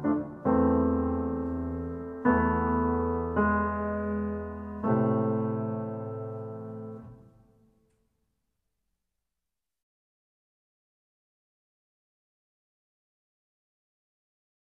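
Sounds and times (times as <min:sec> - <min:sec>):
piano accompaniment: 0:00.0 - 0:07.7.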